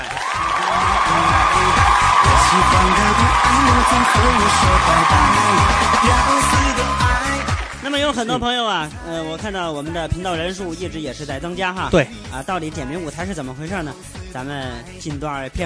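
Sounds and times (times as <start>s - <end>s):
applause: 0.0s - 8.3s
speech: 2.5s - 15.6s.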